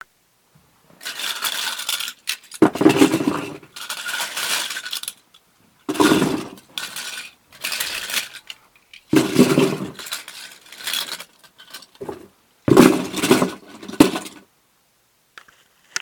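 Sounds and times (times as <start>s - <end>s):
toy cars put in a box: 0.9s - 14.4s.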